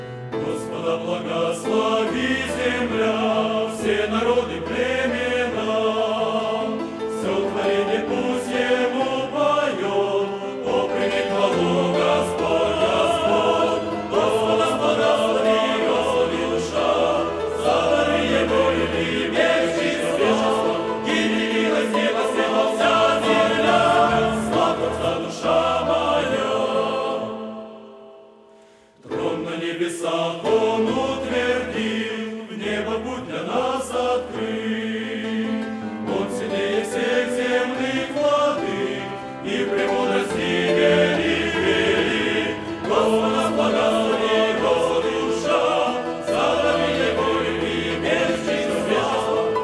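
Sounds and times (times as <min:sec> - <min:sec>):
choir singing: 0:00.3 - 0:49.6.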